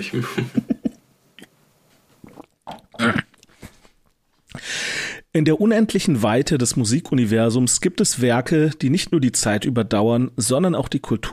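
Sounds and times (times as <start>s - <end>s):
speech: 0.0s - 0.7s, 5.3s - 11.3s
person gulping and swallowing while taking a drink: 2.2s - 4.6s.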